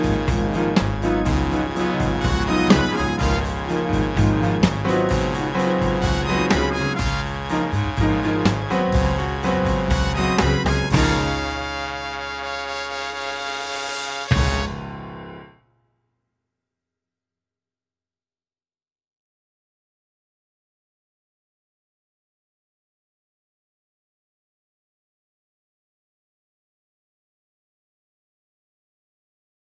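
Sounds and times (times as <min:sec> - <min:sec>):
instrumental music: 0:00.0 - 0:15.6.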